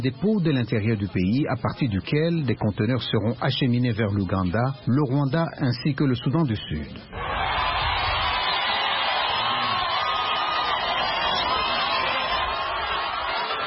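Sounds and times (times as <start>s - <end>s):
speech: 0.0s - 7.4s
enthusiastic crowd cheering at train station: 7.1s - 13.6s.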